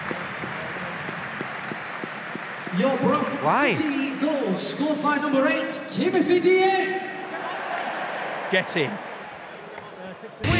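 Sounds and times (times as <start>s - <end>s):
stadium crowd applause: 0.0s - 4.8s, 7.2s - 10.5s
speech: 2.7s - 7.1s, 8.5s - 9.1s.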